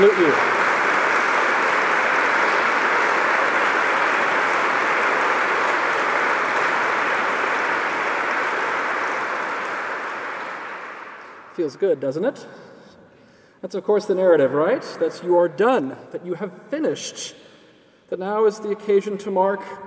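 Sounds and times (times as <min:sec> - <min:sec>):
audience applause: 0:00.0 - 0:11.6
speech: 0:11.7 - 0:12.7, 0:13.6 - 0:17.5, 0:18.1 - 0:19.8.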